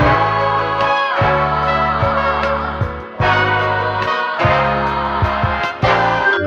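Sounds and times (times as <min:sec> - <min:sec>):
horns in phonk loop: 0:00.0 - 0:06.4.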